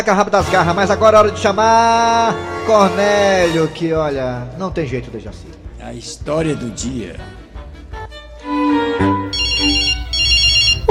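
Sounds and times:
speech: 0:00.0 - 0:07.4
music bed: 0:00.3 - 0:10.8
telephone ringing in a comedic sketch: 0:09.3 - 0:10.8.

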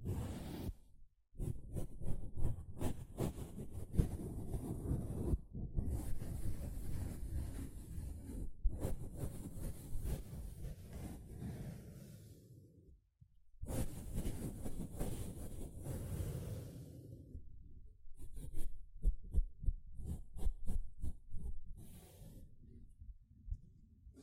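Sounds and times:
sponge rubbed and squeezed: 0:00.0 - 0:00.8, 0:01.4 - 0:12.4, 0:13.6 - 0:16.9, 0:18.2 - 0:22.4.

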